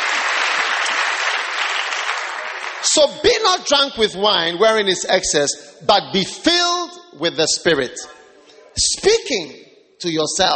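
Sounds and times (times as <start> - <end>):
audience clapping: 0.0 - 3.6
speech: 2.9 - 8.2, 8.8 - 10.5.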